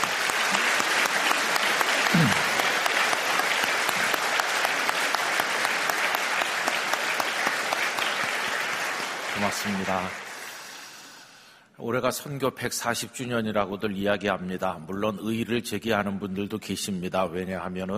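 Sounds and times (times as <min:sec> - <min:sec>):
audience applauding to welcome missionaries: 0:00.0 - 0:11.2
speech: 0:02.2 - 0:02.5, 0:09.5 - 0:10.2, 0:11.8 - 0:17.9.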